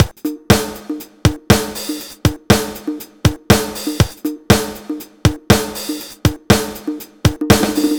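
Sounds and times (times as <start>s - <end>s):
drums: 0.0s - 7.9s.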